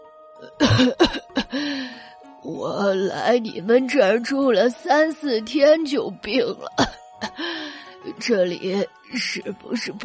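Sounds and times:
speech: 0:00.4 - 0:07.6, 0:08.2 - 0:10.0
old woman coughing: 0:00.5 - 0:01.5, 0:06.8 - 0:07.4.

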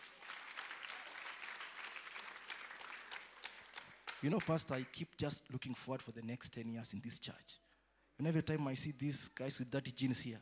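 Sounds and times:
audience clapping: 0:00.0 - 0:05.1
speech: 0:04.2 - 0:07.6, 0:08.2 - 0:10.4.

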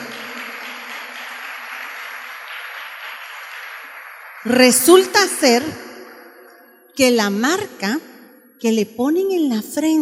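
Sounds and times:
audience applause: 0:00.0 - 0:05.4
speech: 0:04.4 - 0:05.9, 0:07.0 - 0:10.0.

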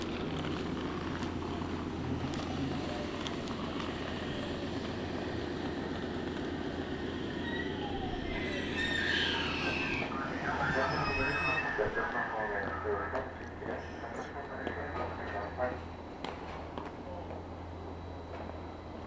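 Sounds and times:
train on the Meitetsu Bishi Line rumbling and humming: 0:00.0 - 0:19.0
bright squeal: 0:07.4 - 0:12.9.

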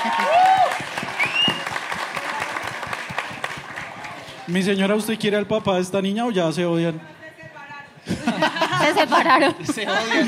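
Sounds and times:
audience applause: 0:00.0 - 0:04.6
high whistle: 0:01.2 - 0:01.7
speech: 0:04.5 - 0:07.2, 0:08.9 - 0:10.2
laughter: 0:08.0 - 0:10.2.

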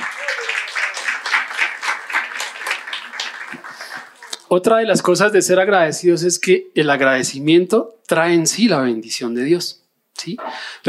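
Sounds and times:
audience applause: 0:00.0 - 0:04.5
speech: 0:04.5 - 0:10.8.

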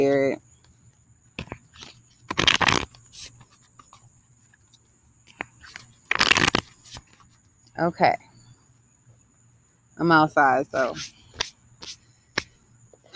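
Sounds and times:
speech: 0:00.0 - 0:00.5, 0:07.8 - 0:08.3, 0:10.0 - 0:11.2
tarot cards being shuffled outdoors: 0:01.4 - 0:07.4, 0:10.8 - 0:12.5.

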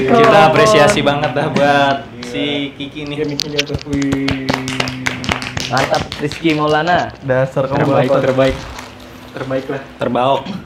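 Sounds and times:
speech: 0:00.0 - 0:04.8, 0:05.7 - 0:10.6
sharp hand claps: 0:00.1 - 0:01.4, 0:03.0 - 0:07.0.

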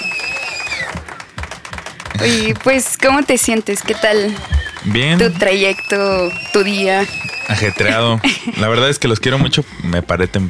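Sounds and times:
live hand clapping applause: 0:00.0 - 0:09.2
laughter: 0:02.1 - 0:02.8, 0:03.6 - 0:09.6
speech: 0:02.2 - 0:10.4.

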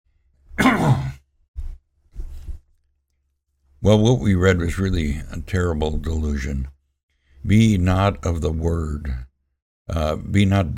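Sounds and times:
throat clearing: 0:00.6 - 0:01.2
speech: 0:03.8 - 0:06.8, 0:07.4 - 0:09.3, 0:09.9 - 0:10.7.

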